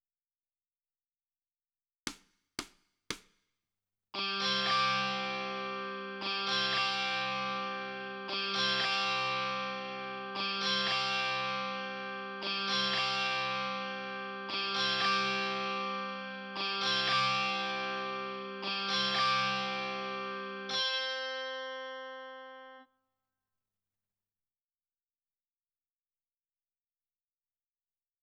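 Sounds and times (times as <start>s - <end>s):
guitar: 4.2s - 22.8s.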